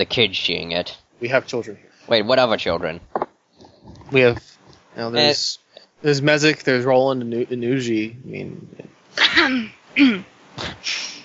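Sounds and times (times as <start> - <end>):
speech: 0.0 - 3.1, 4.1 - 11.1
people coughing from dust: 9.2 - 10.9.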